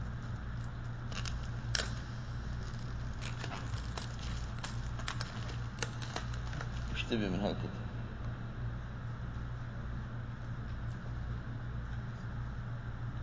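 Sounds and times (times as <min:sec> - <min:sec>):
steady low hum: 0:00.0 - 0:13.2
plastic bag being opened: 0:01.0 - 0:07.6
speech: 0:07.1 - 0:07.9.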